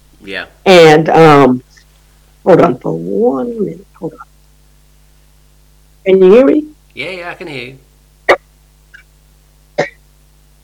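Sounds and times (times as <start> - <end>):
speech: 0.2 - 1.7, 2.4 - 4.3, 6.0 - 8.4
throat clearing: 9.8 - 10.0.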